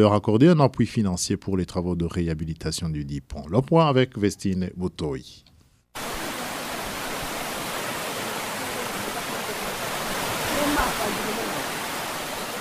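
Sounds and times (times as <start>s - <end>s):
speech: 0.0s - 6.1s
Mhanda river rushing under a destroyed bridge in Musigati commune, Burundi: 6.0s - 12.5s.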